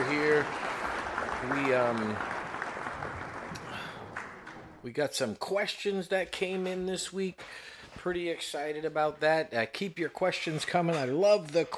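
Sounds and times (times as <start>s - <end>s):
canned studio audience applause: 0.0s - 4.8s
speech: 1.5s - 2.3s, 4.8s - 11.7s.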